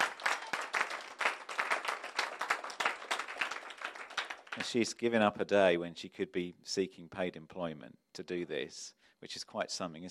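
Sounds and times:
audience applause: 0.0s - 4.8s
speech: 4.6s - 10.0s.

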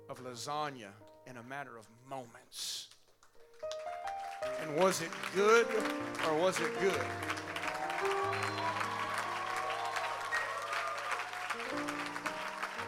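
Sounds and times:
speech: 0.1s - 2.9s, 4.4s - 8.5s
audience applauding kitchen crew: 3.2s - 12.8s.

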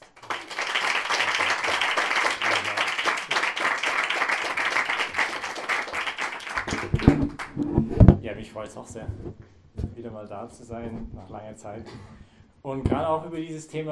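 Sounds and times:
audience applause: 0.0s - 7.6s
speech: 8.4s - 13.9s.

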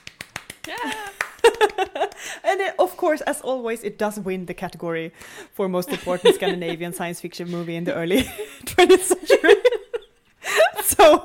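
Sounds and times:
tiny applause: 0.0s - 2.3s
speech: 0.7s - 1.8s, 2.4s - 9.6s, 11.0s - 11.2s
laughter: 0.7s - 2.6s, 5.9s - 11.2s.

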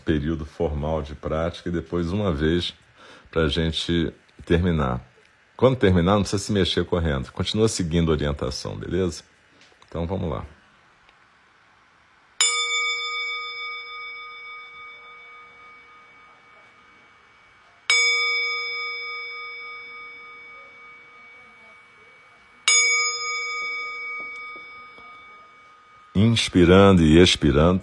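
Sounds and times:
speech: 0.1s - 9.3s, 9.9s - 10.6s, 26.4s - 27.8s
meditation bell struck: 12.4s - 27.8s.

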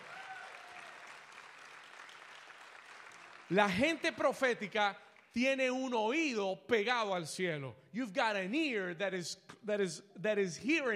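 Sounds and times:
audience applause: 0.0s - 3.9s
speech: 3.5s - 10.9s.

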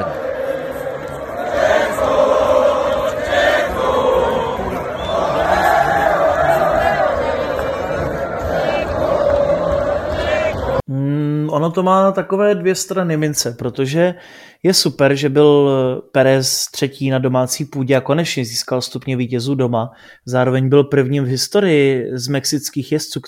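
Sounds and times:
packed grandstand crowd roaring and cheering at motor race podium: 0.0s - 10.8s
speech: 11.7s - 23.2s.

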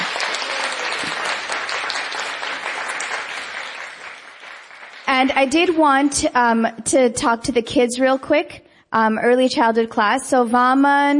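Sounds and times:
sustained applause from a crowd: 0.0s - 6.2s
speech: 5.2s - 11.1s.

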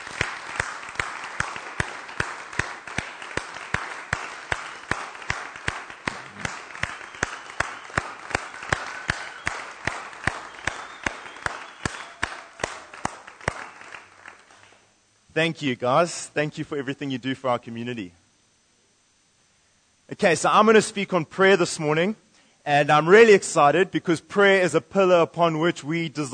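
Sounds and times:
round of applause: 0.0s - 14.9s
speech: 15.4s - 18.2s, 20.2s - 26.3s.

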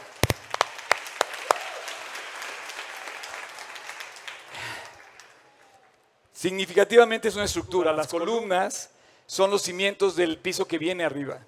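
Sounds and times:
audience applause: 0.0s - 5.8s
speech: 6.4s - 11.4s.

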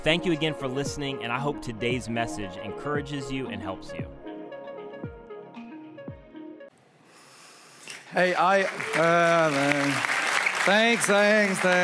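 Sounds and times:
speech: 0.0s - 4.2s, 8.1s - 11.8s
audience applause: 8.2s - 11.8s.

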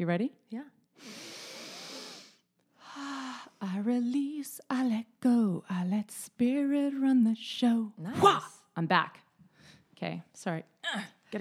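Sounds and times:
speech: 0.0s - 1.3s, 3.0s - 9.2s, 10.0s - 11.3s
deep breath: 1.0s - 3.6s.

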